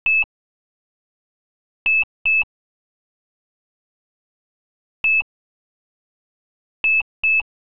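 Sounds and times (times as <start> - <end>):
buzzer: 0.0 - 0.3, 1.9 - 2.5, 6.9 - 7.5.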